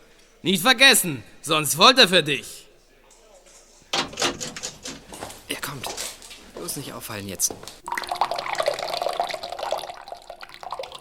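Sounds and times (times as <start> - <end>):
speech: 0.4 - 2.6, 6.8 - 8.1
running water: 7.8 - 10.9.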